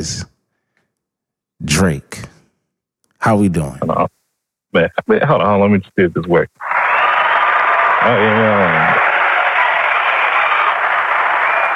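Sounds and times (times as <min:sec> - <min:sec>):
speech: 0:00.0 - 0:00.3, 0:01.6 - 0:02.4, 0:03.2 - 0:06.7, 0:08.0 - 0:09.0
audience applause: 0:06.6 - 0:11.7.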